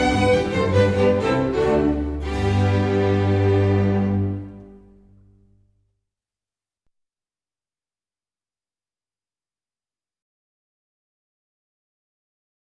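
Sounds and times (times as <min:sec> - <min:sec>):
baroque concerto for strings and harpsichord in G major: 0:00.0 - 0:04.9.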